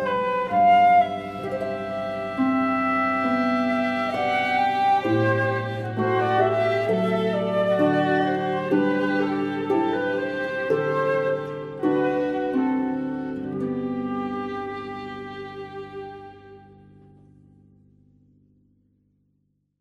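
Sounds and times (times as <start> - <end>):
flute: 0.0 - 17.1
violin: 0.0 - 17.5
harp: 0.0 - 18.3.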